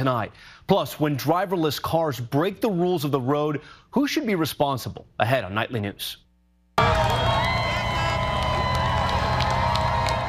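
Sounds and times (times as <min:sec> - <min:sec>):
speech: 0:00.0 - 0:06.2
large crowd of fans cheering and shouting: 0:06.8 - 0:10.2
scattered whistles: 0:07.0 - 0:10.2.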